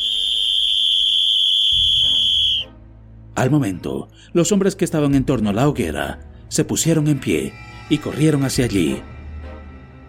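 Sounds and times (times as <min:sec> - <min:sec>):
whistle blown hard: 0:00.0 - 0:02.7
speech: 0:03.4 - 0:09.2.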